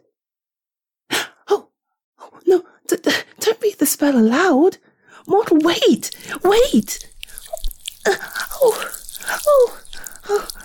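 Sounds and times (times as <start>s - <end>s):
speech: 2.4s - 2.7s, 3.8s - 7.1s, 8.0s - 10.6s
wet squelchy plops of tentacles emerging from the floor: 5.4s - 10.6s.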